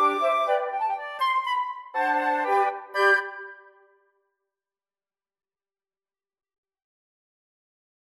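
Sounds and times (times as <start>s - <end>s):
flute quartet: 0.0s - 4.0s.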